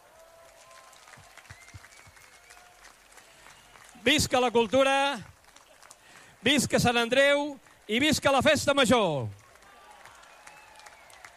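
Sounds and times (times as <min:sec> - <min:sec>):
crowd applause: 0:00.0 - 0:07.8, 0:09.2 - 0:11.3
speech: 0:04.0 - 0:05.3, 0:06.4 - 0:09.4.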